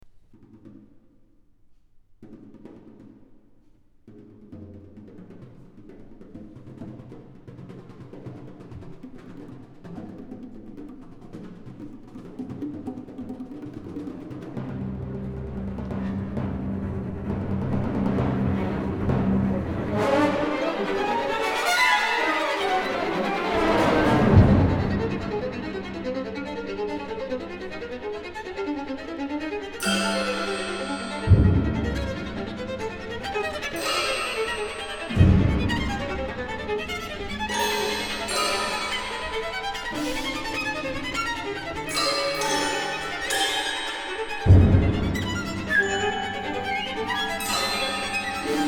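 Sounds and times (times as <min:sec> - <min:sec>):
agitated perpetuum mobile violin concerto: 0:14.8 - 0:48.6.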